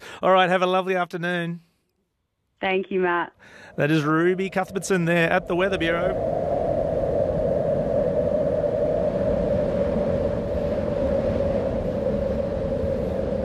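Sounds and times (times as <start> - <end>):
speech: 0.2 - 1.7, 2.6 - 6.4
wind howling: 3.4 - 13.4.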